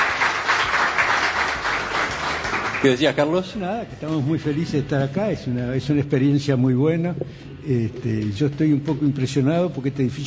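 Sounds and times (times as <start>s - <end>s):
audience applause greeting arriving guests: 0.0s - 3.2s
speech: 2.8s - 10.2s.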